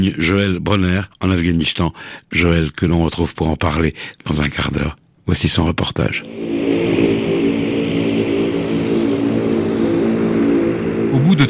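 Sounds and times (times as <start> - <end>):
speech: 0.0 - 6.7
small passenger plane engines droning as it lands: 6.2 - 11.4.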